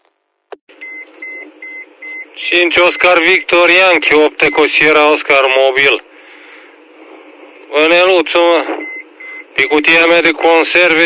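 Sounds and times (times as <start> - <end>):
radio test transmission beeps: 0.8 - 2.3, 8.8 - 9.8
band-limited radio static hiss: 2.3 - 11.0
speech: 2.4 - 6.1, 7.7 - 8.8, 9.6 - 11.0.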